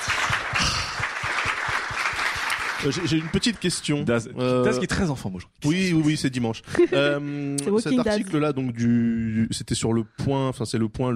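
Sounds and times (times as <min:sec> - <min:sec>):
television studio audience applause for a French talk-show guest: 0:00.0 - 0:04.6
speech: 0:02.8 - 0:11.1.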